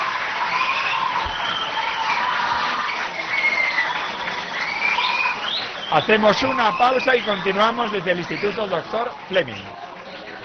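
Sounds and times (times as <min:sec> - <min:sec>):
audience applause: 0:00.0 - 0:10.4
speech: 0:05.9 - 0:09.8.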